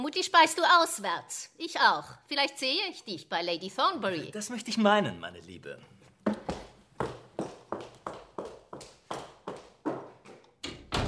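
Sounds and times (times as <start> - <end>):
speech: 0.1 - 6.0
woman's running footsteps hurrying out of a room: 6.2 - 10.7
door closing: 10.6 - 11.0.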